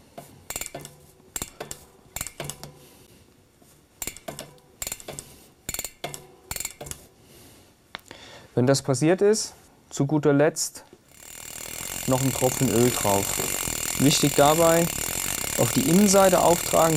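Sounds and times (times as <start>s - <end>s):
bicycle cassette clicking as turned backwards while wiped: 0.5s - 2.6s, 4.0s - 7.0s, 11.1s - 16.9s
speech: 8.6s - 10.9s, 12.1s - 15.0s, 15.6s - 16.9s.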